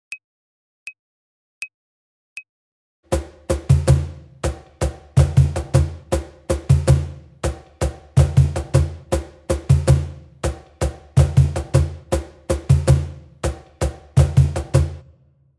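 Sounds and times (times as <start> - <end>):
samba music: 3.1 - 15.1.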